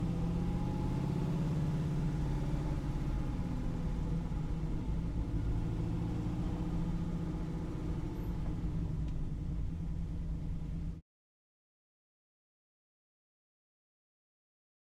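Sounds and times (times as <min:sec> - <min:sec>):
1969 Pontiac Firebird onboard interior while driving at medium speed: 0:00.0 - 0:11.0.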